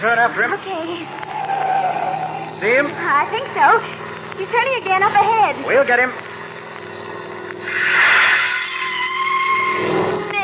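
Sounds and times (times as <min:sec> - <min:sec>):
speech: 0:00.0 - 0:01.8, 0:02.6 - 0:06.3, 0:07.6 - 0:08.1
car tires screeching in a long harsh skid: 0:00.0 - 0:04.2, 0:07.6 - 0:10.4
car engine rumble: 0:00.0 - 0:10.4
car tire blowing out: 0:00.0 - 0:10.4.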